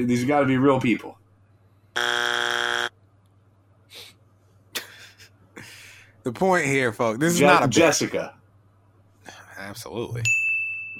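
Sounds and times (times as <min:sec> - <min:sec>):
speech: 0:00.0 - 0:01.2, 0:06.3 - 0:08.4, 0:09.6 - 0:10.4
game buzzer: 0:02.0 - 0:02.9.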